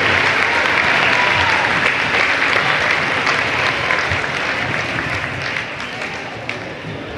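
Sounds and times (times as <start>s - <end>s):
audience applause for teams: 0.0s - 7.1s.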